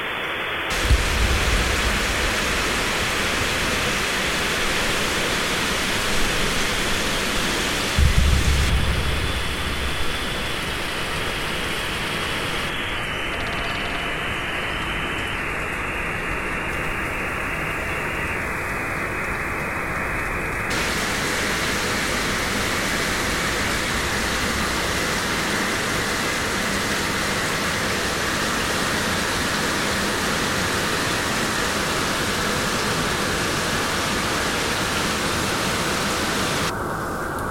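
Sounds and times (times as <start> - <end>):
steady dense rushing noise from a websdr recording: 0.0 - 37.5
low thumps: 0.7 - 4.8, 8.0 - 11.5.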